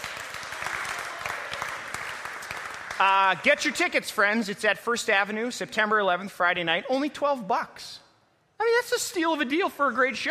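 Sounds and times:
crowd applauding: 0:00.0 - 0:03.8
speech: 0:03.0 - 0:08.0, 0:08.7 - 0:10.2.

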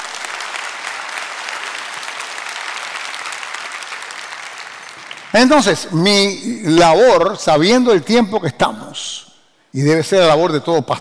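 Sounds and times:
audience applause: 0:00.0 - 0:05.7
speech: 0:05.3 - 0:10.9.

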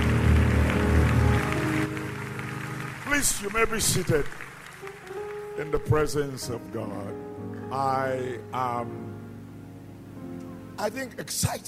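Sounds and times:
audience clapping: 0:00.0 - 0:06.6
low musical drone: 0:00.0 - 0:11.2
speech: 0:03.2 - 0:04.4, 0:05.6 - 0:09.0, 0:10.8 - 0:11.6.

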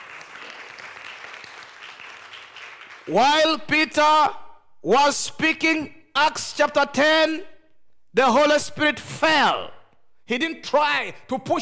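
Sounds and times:
audience clapping: 0:00.0 - 0:03.2
speech: 0:03.1 - 0:07.5, 0:08.2 - 0:11.6.

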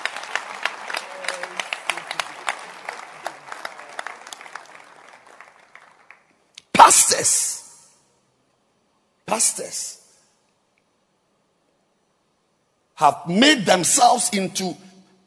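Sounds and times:
audience clapping hands in a steady rhythmic beat: 0:00.0 - 0:06.9
speech: 0:06.9 - 0:07.6, 0:09.3 - 0:10.0, 0:13.0 - 0:14.9.

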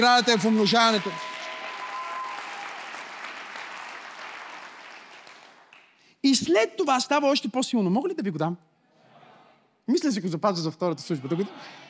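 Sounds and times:
speech: 0:00.0 - 0:01.3, 0:06.2 - 0:08.7, 0:09.9 - 0:11.8
audience applause: 0:00.0 - 0:05.9.

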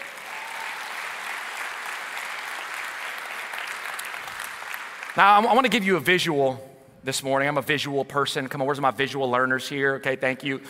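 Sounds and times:
audience applauding: 0:00.0 - 0:05.5
speech: 0:05.2 - 0:10.6.

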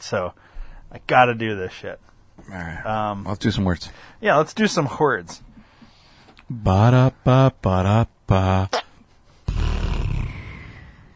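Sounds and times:
speech: 0:00.0 - 0:05.5, 0:06.5 - 0:08.8
fart: 0:08.4 - 0:10.9.

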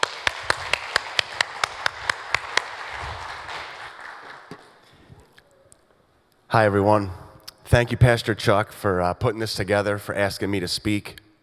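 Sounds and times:
audience applause at a church service welcoming a speaker: 0:00.0 - 0:04.9
speech: 0:06.5 - 0:11.2.

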